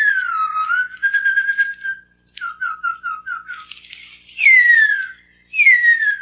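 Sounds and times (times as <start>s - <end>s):
human whistle imitating the call of the extinct huia bird: 0.0s - 3.7s, 4.4s - 6.2s.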